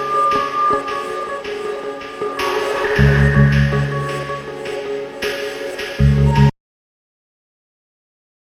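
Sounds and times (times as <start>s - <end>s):
ambient guitar: 0.0s - 6.5s.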